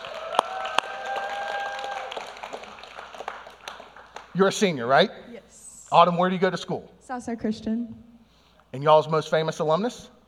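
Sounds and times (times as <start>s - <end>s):
audience clapping as a high-school senior is introduced: 0.0s - 4.9s
speech: 4.4s - 5.2s, 5.9s - 8.1s, 8.7s - 10.2s.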